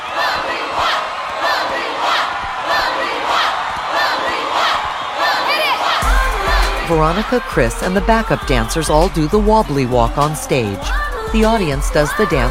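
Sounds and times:
audience cheering and whooping at a standing ovation: 0.0s - 12.4s
speech: 6.9s - 12.4s.

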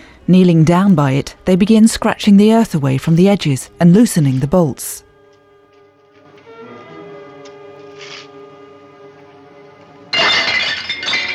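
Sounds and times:
soft sustained tones: 0.0s - 11.3s
speech: 0.3s - 5.0s
roof tiles falling and shattering: 10.2s - 11.3s.

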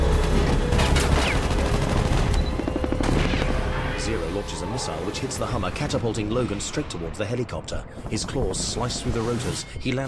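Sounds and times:
machine gun firing: 0.1s - 3.8s
speech: 4.7s - 10.0s.

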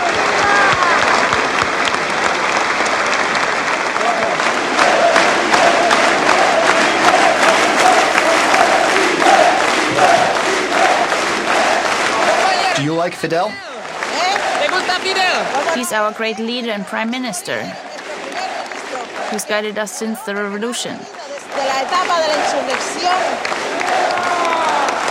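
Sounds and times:
people shouting: 0.0s - 1.3s, 4.0s - 16.6s, 17.8s - 20.1s, 21.5s - 25.0s
audience applauding at a political gathering for Fidel Castro: 0.0s - 25.0s
speech: 13.1s - 13.7s, 14.8s - 17.9s, 19.3s - 23.6s.

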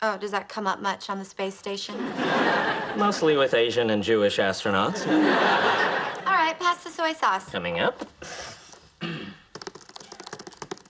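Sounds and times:
speech: 0.0s - 9.2s
laughter: 1.9s - 3.4s, 4.8s - 6.3s
rapid typing of commands on a laptop keyboard: 9.5s - 10.8s.

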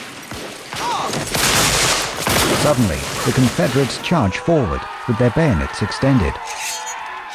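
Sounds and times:
gunfire in a Civil War battle: 0.1s - 4.1s
speech: 2.6s - 6.6s.

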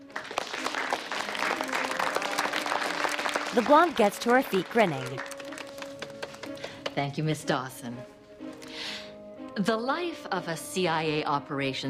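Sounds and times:
round of applause: 0.0s - 6.9s
speech: 3.6s - 5.3s, 7.0s - 8.1s, 9.6s - 11.8s.

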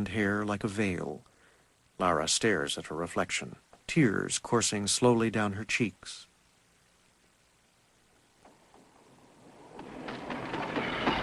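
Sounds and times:
speech: 0.0s - 1.3s, 2.0s - 6.3s
train pulling into a station during daytime: 9.5s - 11.2s.

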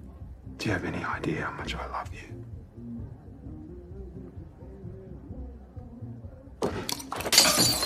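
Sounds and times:
speech: 0.7s - 2.4s
drinking glass thrown against a wall shattering: 6.7s - 7.8s.

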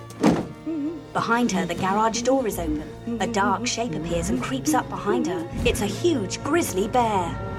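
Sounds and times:
heavy plastic cool box thunking: 0.2s - 0.6s
speech: 1.1s - 7.5s.

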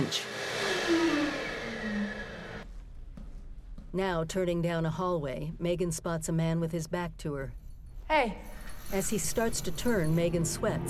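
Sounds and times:
speech: 0.0s - 1.0s, 3.9s - 10.8s
motion sensor hand dryer blowing: 0.0s - 2.6s.

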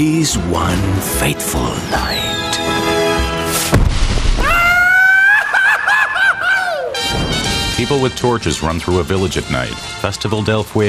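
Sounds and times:
speech: 0.0s - 2.9s, 7.8s - 10.8s
fireworks exploding overhead: 2.1s - 4.7s
laughter: 5.0s - 7.0s.

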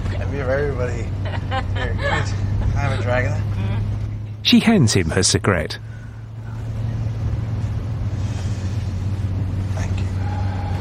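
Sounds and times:
truck engine rumbling as it drives off: 0.0s - 10.8s
speech: 0.3s - 6.0s
laughter: 1.2s - 3.2s.

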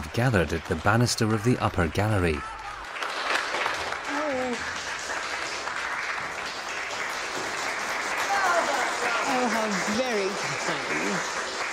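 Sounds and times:
speech: 0.2s - 2.6s
slow hand clapping: 2.6s - 11.7s.

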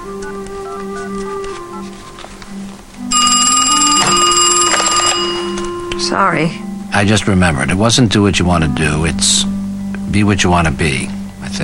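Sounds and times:
cordless phone dialing tones and clicks: 0.2s - 6.1s
cordless phone buzzing electronic ring: 3.1s - 6.2s
speech: 6.1s - 11.6s.

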